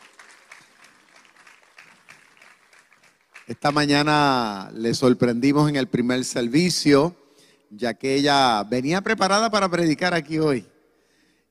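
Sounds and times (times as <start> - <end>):
audience applause: 0.0 - 4.1
speech: 3.5 - 10.7.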